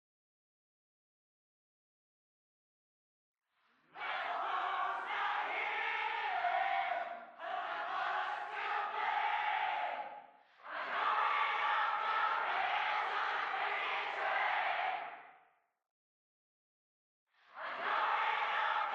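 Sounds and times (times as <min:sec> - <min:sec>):
crowd: 0:03.6 - 0:15.6, 0:17.3 - 0:18.9.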